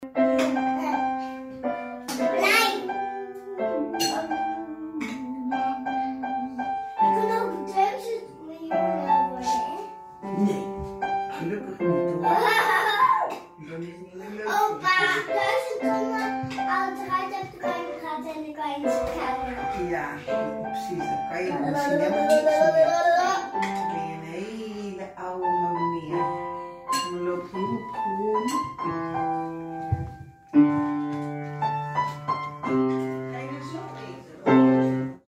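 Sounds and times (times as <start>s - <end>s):
improvised song: 0.0s - 33.5s.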